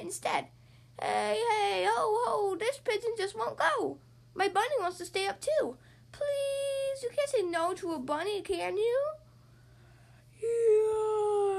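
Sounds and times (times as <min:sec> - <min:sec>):
speech: 0:00.0 - 0:09.2
yawn: 0:10.4 - 0:11.5.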